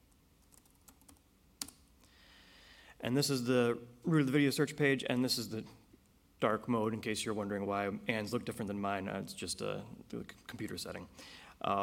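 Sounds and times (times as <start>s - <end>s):
typing a name on a computer keyboard: 0.1s - 1.8s
speech: 3.0s - 5.8s, 6.4s - 11.8s.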